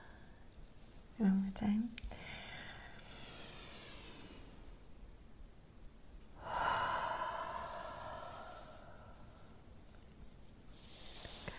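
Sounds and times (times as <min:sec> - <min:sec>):
speech: 0:01.2 - 0:02.2
deep breaths in and out: 0:02.1 - 0:05.0, 0:06.4 - 0:09.9.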